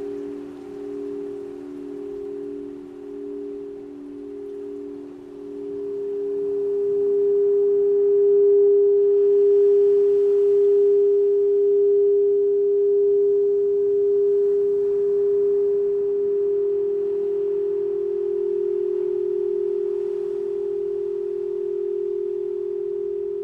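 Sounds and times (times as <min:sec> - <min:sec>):
crystal singing bowls: 0:00.0 - 0:23.4.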